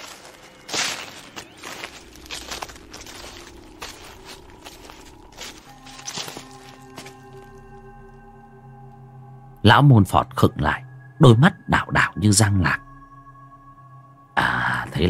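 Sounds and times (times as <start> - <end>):
shuffling dragging footsteps of someone following behind: 0.0 - 7.5
low sustained tone: 0.0 - 15.0
speech: 9.7 - 12.8.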